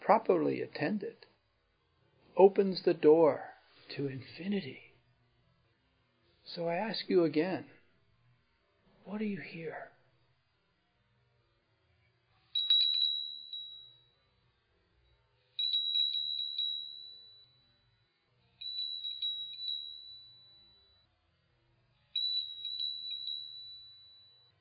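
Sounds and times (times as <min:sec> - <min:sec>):
speech: 0:00.1 - 0:01.3, 0:02.4 - 0:04.8, 0:06.5 - 0:07.8, 0:09.1 - 0:09.9
bell ringing: 0:12.6 - 0:14.2, 0:15.6 - 0:17.8, 0:18.6 - 0:21.0, 0:22.2 - 0:24.5.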